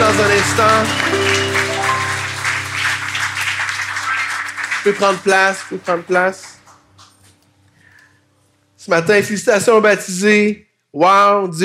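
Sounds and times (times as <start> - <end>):
audience applauding: 0.0 - 7.2
speech: 0.2 - 1.6, 4.8 - 6.5, 8.8 - 11.6.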